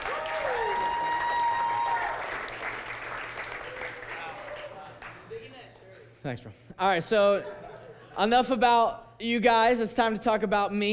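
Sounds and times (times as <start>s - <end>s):
whoops and cheers: 0.0s - 2.5s
audience applauding: 0.0s - 5.3s
speech: 6.2s - 7.6s, 8.2s - 10.9s.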